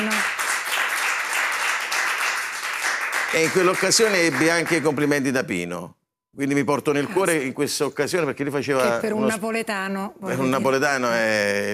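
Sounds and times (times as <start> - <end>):
audience applause: 0.0 - 5.1
speech: 3.3 - 11.7.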